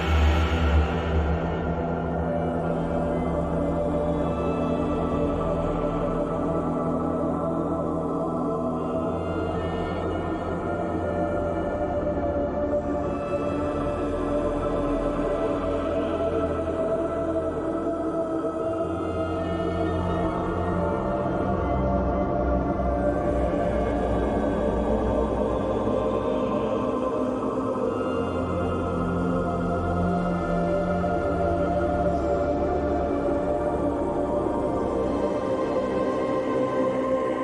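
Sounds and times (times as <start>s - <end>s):
dark ambient horror soundscape: 0.0s - 37.4s.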